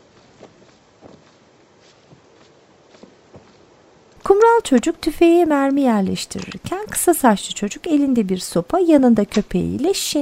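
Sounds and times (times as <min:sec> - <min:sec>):
footsteps of a boy walking along the foot of some rocks: 0:00.0 - 0:05.0
speech: 0:04.4 - 0:10.2.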